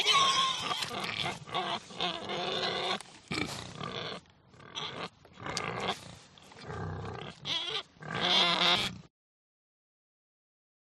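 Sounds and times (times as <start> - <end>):
pigs squealing: 0.0 - 6.0, 7.1 - 9.0.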